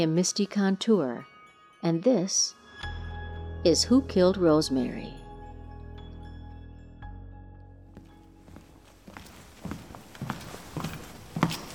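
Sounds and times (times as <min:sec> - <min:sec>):
speech: 0:00.0 - 0:02.6, 0:03.6 - 0:05.2
footsteps walking to the Jefferson County Extension Office: 0:08.0 - 0:11.7.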